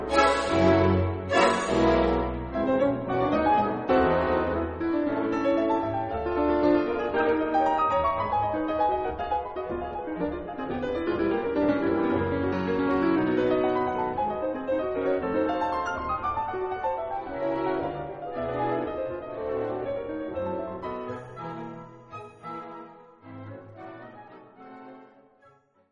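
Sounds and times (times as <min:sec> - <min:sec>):
piano toccata: 0:00.0 - 0:25.6.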